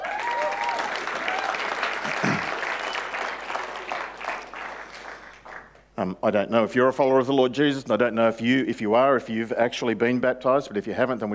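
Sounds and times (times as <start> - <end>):
audience clapping for newly baptized people: 0.0 - 5.9
speech: 6.1 - 11.3.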